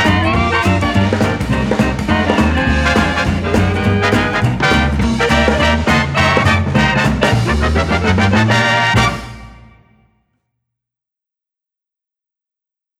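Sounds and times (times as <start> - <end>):
big band music: 0.0 - 10.1.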